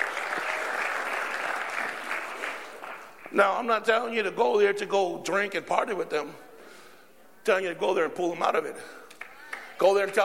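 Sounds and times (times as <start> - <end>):
audience applause: 0.0 - 3.3
speech: 3.3 - 6.4, 7.4 - 9.0, 9.8 - 10.2.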